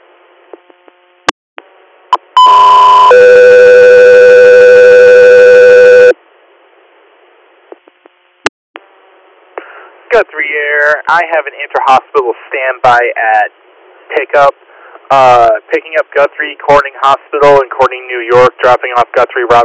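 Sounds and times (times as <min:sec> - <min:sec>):
two-part dispatch alert tone: 0:02.4 - 0:06.1
speech: 0:10.3 - 0:19.6.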